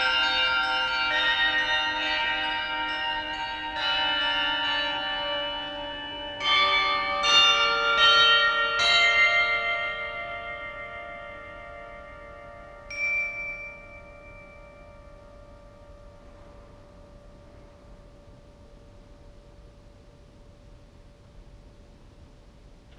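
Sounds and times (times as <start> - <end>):
carillon bells playing a suite: 0.0 - 16.4.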